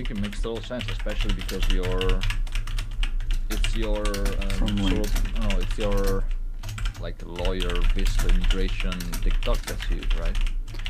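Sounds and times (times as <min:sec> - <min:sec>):
speech: 0:00.0 - 0:02.4, 0:03.5 - 0:06.4, 0:07.0 - 0:10.8
typing on a computer keyboard: 0:00.0 - 0:10.8.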